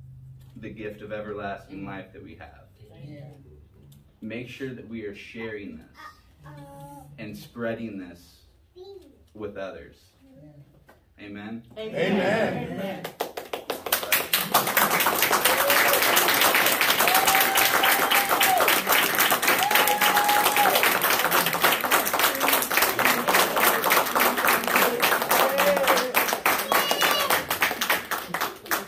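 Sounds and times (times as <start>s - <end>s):
speech: 0.6s - 3.6s, 4.2s - 10.6s, 11.2s - 13.2s
audience hand clap of praise: 12.8s - 28.8s.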